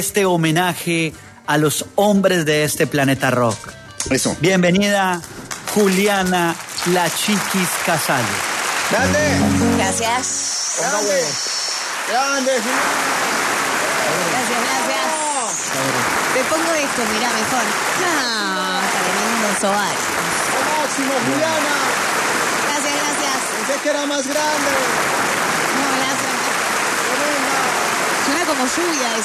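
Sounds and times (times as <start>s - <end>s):
speech: 0.0s - 13.5s, 14.1s - 15.1s, 15.7s - 20.1s, 21.0s - 21.8s, 23.7s - 25.2s, 28.5s - 29.2s
crowd applause: 5.9s - 29.2s.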